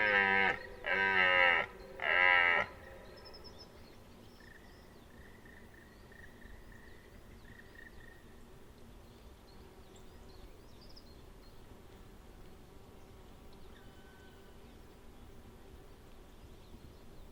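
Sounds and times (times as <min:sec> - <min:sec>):
deer calling with rich moaning calls: 0:00.0 - 0:03.1.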